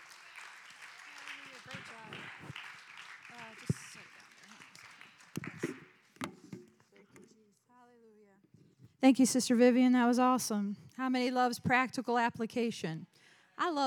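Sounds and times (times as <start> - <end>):
audience clapping hands: 0.0 - 6.2
speech: 9.0 - 13.8.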